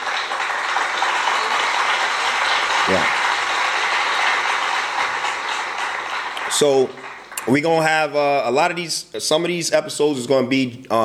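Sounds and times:
applause: 0.0s - 8.1s
speech: 2.9s - 3.2s, 6.6s - 11.0s.

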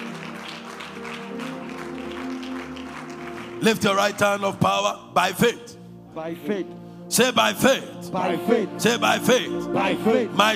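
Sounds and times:
audience clapping hands: 0.0s - 4.9s
speech: 3.6s - 10.5s.

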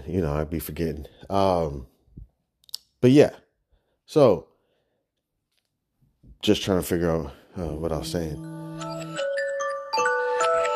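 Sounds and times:
speech: 0.1s - 1.9s, 3.0s - 3.4s, 4.1s - 4.5s, 6.4s - 8.9s
reminder alarm chime: 7.6s - 10.7s.

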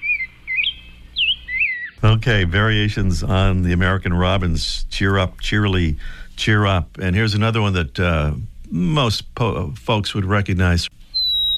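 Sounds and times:
rose-breasted grosbeak singing: 0.0s - 2.0s, 11.0s - 11.5s
speech: 2.2s - 11.0s.

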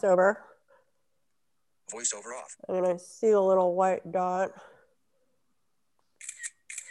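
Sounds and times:
speech: 0.0s - 0.5s, 1.9s - 4.8s
phone camera shutter clicks: 6.2s - 6.8s.

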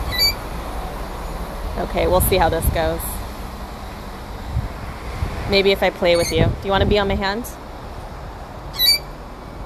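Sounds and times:
pet bird squawk: 0.1s - 0.4s, 6.1s - 6.4s, 8.7s - 9.1s
speech: 1.8s - 3.1s, 5.5s - 7.6s.

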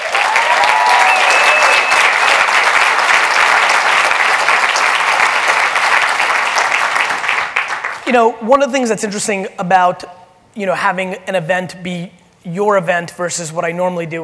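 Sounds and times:
audience applause: 0.0s - 8.0s
faint whistles: 1.0s - 2.2s
speech: 8.1s - 14.2s.

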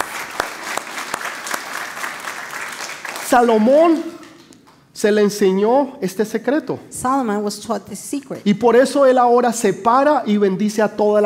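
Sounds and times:
audience applause: 0.0s - 3.6s
speech: 3.3s - 4.2s, 5.0s - 11.2s.

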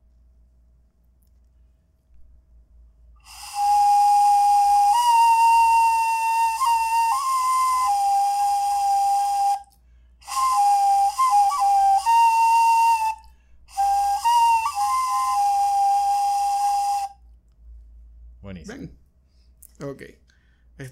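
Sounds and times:
deer bone flute being played: 3.2s - 17.3s.

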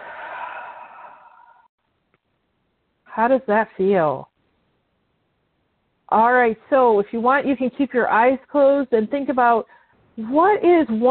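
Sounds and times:
deep breath exhaled in a steady hissing exhale: 0.0s - 1.7s
speech: 3.2s - 4.3s, 6.1s - 11.1s.

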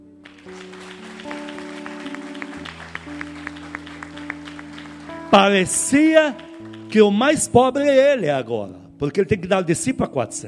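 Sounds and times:
audience applause: 0.2s - 7.5s
speech: 5.3s - 10.4s.

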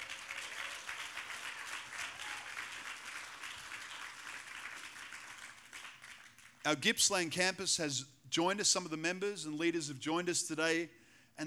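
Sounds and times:
crowd applause: 0.0s - 6.7s
speech: 6.6s - 11.4s.

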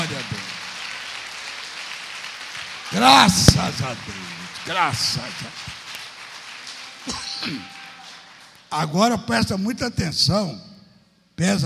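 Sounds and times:
audience applauding: 0.0s - 8.8s
speech: 2.9s - 5.7s, 7.1s - 7.8s, 8.7s - 10.7s, 11.4s - 11.6s.

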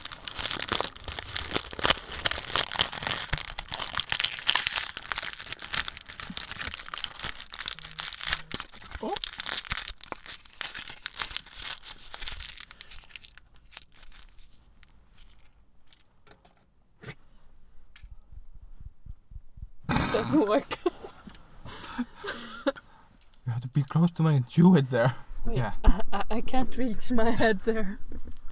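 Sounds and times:
chocolate wrapper crinkling and tearing open: 0.0s - 16.1s
speech: 20.2s - 20.8s, 23.9s - 28.0s.

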